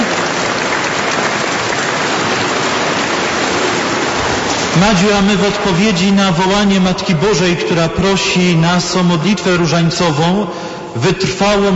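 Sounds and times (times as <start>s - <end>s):
applause: 0.0s - 5.2s
speech: 4.8s - 11.7s.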